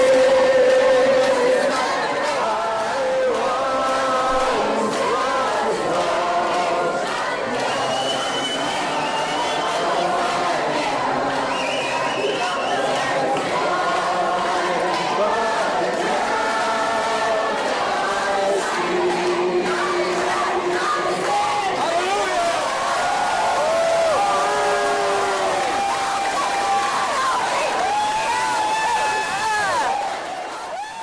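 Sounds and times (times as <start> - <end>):
crowd chanting at a protest: 0.0 - 31.0.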